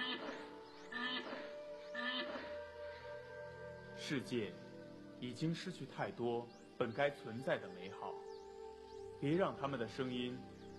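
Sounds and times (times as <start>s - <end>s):
black rhinoceros squealing calls: 0.0s - 2.6s
hiss: 0.0s - 10.7s
speech: 4.1s - 8.3s, 9.2s - 10.5s.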